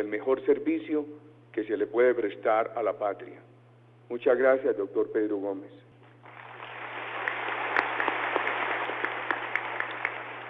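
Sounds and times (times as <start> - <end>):
speech: 0.0 - 3.5, 4.1 - 5.9
audience applause: 6.2 - 10.4.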